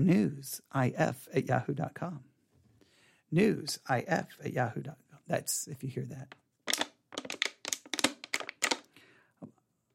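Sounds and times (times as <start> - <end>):
speech: 0.0 - 2.3, 3.3 - 6.4
plastic water bottle being handled: 6.3 - 8.9.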